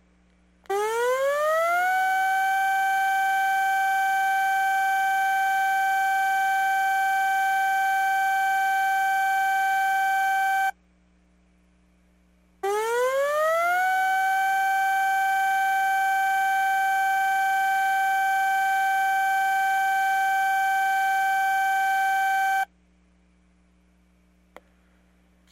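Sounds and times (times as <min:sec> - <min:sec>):
tsunami advisory siren: 0:00.7 - 0:10.7, 0:12.7 - 0:22.7.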